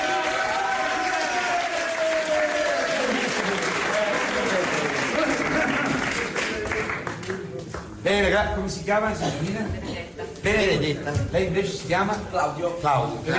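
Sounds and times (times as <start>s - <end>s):
audience applause: 0.0s - 8.0s
speech: 8.1s - 13.3s.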